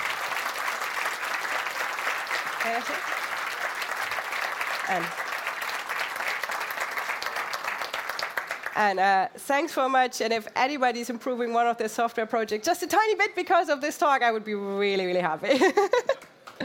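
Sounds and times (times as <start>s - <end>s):
audience applause after a talk: 0.0s - 8.9s
speech: 2.6s - 3.2s, 4.9s - 5.3s, 8.8s - 16.2s.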